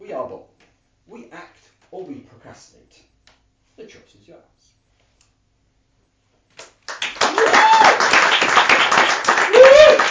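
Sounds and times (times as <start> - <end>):
speech: 0.2 - 3.1, 3.8 - 4.8
audience applause: 6.9 - 10.0
people whooping and cheering: 7.2 - 8.3, 9.2 - 10.0.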